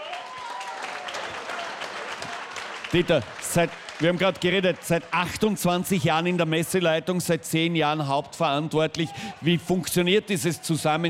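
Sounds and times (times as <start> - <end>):
audience applause at a folk festival: 0.0 - 6.6
speech: 2.9 - 11.0.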